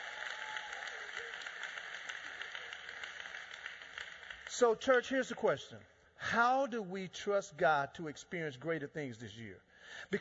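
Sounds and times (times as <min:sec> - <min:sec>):
audience applause: 0:00.0 - 0:05.1
speech: 0:04.6 - 0:10.1.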